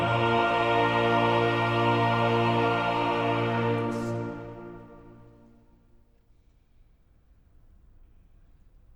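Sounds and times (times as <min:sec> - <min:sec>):
choral duet: 0:00.0 - 0:05.6.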